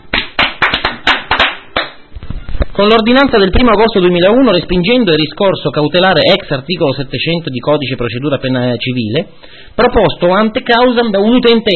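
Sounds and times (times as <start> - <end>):
applause sound effect hand claps: 0.0 - 2.0
speech: 2.8 - 11.7.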